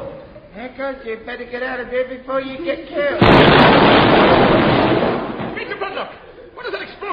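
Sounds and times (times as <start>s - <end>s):
speech: 0.8s - 4.9s, 5.9s - 6.3s
naval sloop firing shells: 3.2s - 5.6s.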